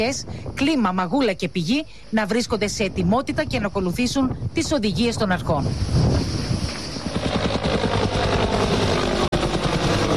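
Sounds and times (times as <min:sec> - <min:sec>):
speech: 0:00.0 - 0:06.4
firefighting helicopter flying overhead: 0:05.8 - 0:10.1.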